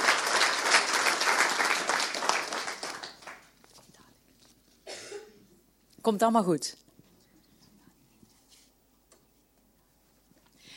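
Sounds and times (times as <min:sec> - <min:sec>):
audience applause: 0:00.0 - 0:03.5
speech: 0:06.0 - 0:06.8.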